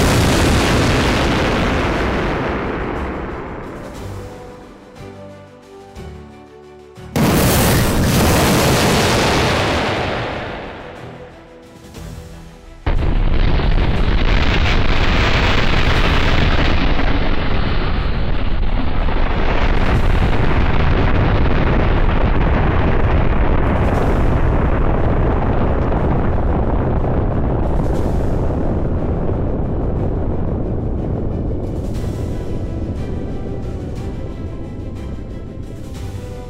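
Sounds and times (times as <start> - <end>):
missile launch: 0.0 - 4.0, 7.2 - 11.0, 12.9 - 34.0.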